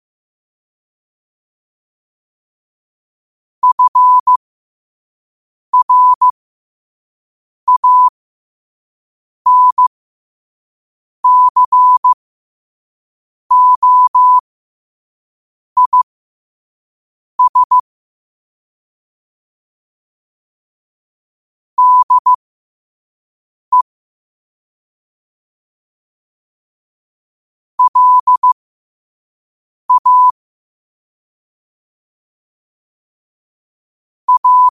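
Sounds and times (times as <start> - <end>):
morse code at 5 wpm: 3.6 - 4.4, 5.8 - 6.4, 7.7 - 8.1, 9.5 - 9.9, 11.2 - 12.2, 13.5 - 14.4, 15.8 - 16.1, 17.4 - 17.8, 21.8 - 22.4, 27.8 - 28.6, 29.9 - 30.4, 34.3 - 34.7.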